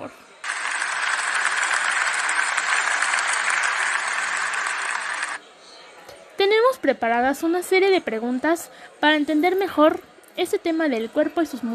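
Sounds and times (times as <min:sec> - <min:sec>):
audience applause: 0:00.4 - 0:05.4
speech: 0:06.4 - 0:11.7.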